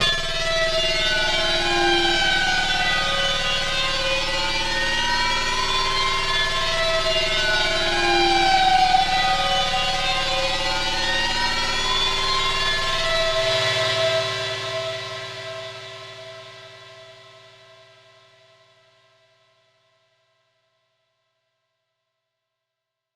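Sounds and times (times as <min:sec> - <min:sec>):
psytrance synth pad: 0:00.0 - 0:18.0.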